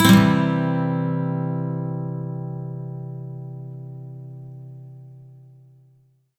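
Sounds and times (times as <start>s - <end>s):
electric and acoustic guitar major sweep in C: 0.0s - 4.8s.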